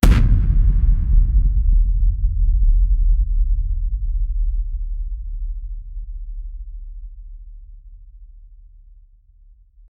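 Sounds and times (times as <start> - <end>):
big bang explosion: 0.0 - 4.8.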